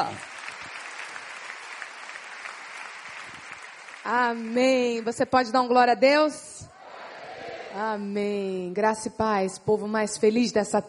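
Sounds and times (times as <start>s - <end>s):
speech: 0.0s - 0.3s, 4.0s - 6.6s, 7.8s - 10.8s
applause: 0.0s - 5.5s.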